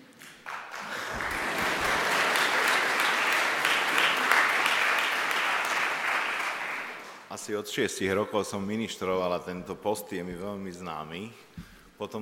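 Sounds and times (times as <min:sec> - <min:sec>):
symposium audience applause: 0:00.0 - 0:07.3
speech: 0:07.4 - 0:12.2.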